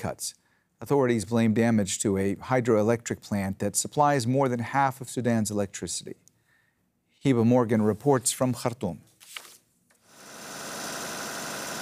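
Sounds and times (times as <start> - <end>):
speech: 0.0 - 6.2, 7.2 - 9.1
generator running during a power outage in Khartoum Sudan: 10.2 - 11.7.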